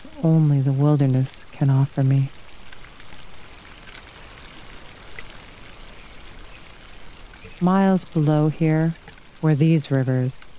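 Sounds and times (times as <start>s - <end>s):
rain in a thunderstorm: 0.0s - 10.5s
speech: 0.2s - 2.4s, 7.6s - 10.5s.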